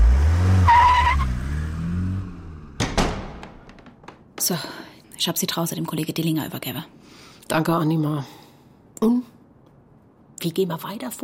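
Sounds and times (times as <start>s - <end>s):
tires screeching: 0.0s - 2.8s
car engine rumbling: 0.0s - 4.4s
sharp knocks: 2.8s - 4.5s
speech: 4.5s - 8.4s, 9.0s - 9.3s, 10.4s - 11.2s.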